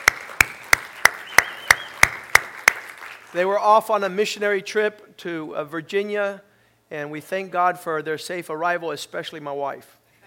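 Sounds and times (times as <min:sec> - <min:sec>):
hand claps welcoming church members back from a missionary trip: 0:00.0 - 0:03.4
speech: 0:03.3 - 0:10.0.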